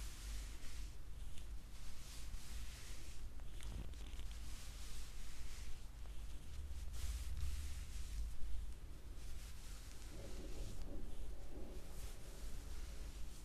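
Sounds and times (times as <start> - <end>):
neck back head and scalp massage: 0.0 - 13.4.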